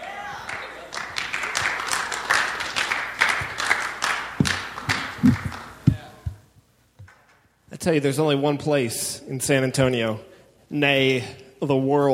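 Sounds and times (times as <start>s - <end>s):
audience clapping: 0.0s - 6.4s, 7.0s - 7.4s
speech: 7.9s - 12.1s.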